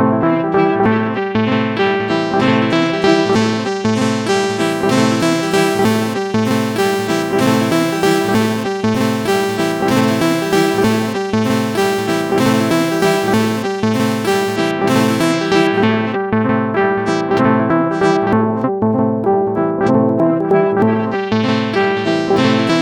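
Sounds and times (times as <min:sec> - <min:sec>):
synthesizer sequence: 0:00.1 - 0:18.6, 0:19.9 - 0:22.7.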